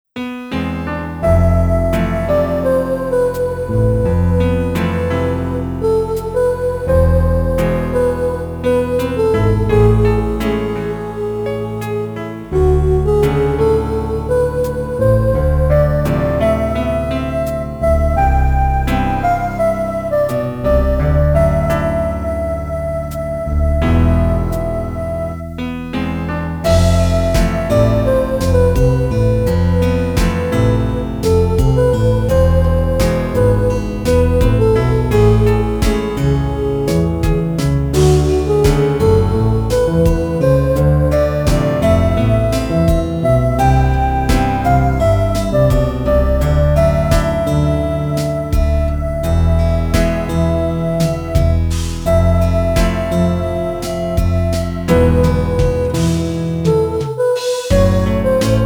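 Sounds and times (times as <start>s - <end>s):
guitar serenade: 0.4s - 58.6s.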